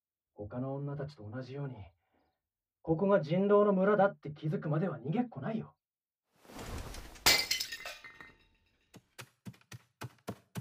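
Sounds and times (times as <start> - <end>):
speech: 0.4 - 2.0, 2.8 - 5.8
vase falling and shattering: 6.6 - 8.9.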